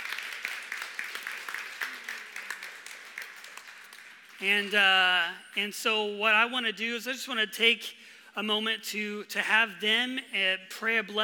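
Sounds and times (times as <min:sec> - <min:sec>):
round of applause: 0:00.0 - 0:04.8
speech: 0:04.4 - 0:11.2.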